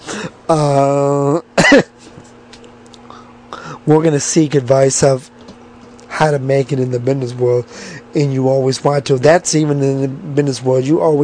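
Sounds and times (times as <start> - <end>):
throat clearing: 0.1 - 2.0
speech: 0.2 - 1.9, 3.9 - 5.3, 6.2 - 11.2
sharp cough: 1.6 - 2.0.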